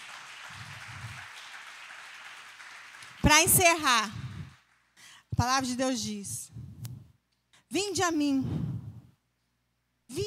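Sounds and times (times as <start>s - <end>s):
audience applauding: 0.0s - 5.0s
speech: 3.2s - 4.2s, 5.4s - 6.4s, 7.7s - 8.6s.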